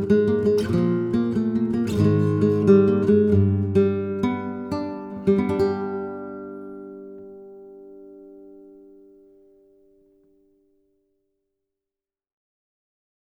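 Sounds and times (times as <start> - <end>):
guitar playing a Solea: 0.0 - 10.5.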